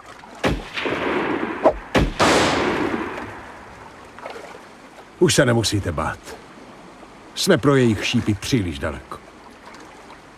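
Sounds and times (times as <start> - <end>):
loud gunshots: 0.4 - 3.5
speech: 5.2 - 6.4, 7.4 - 9.2.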